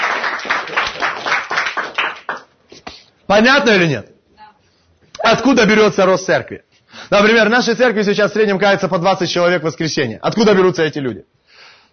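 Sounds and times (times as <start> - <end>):
audience applause: 0.0 - 2.5
speech: 3.3 - 4.1, 5.3 - 11.4.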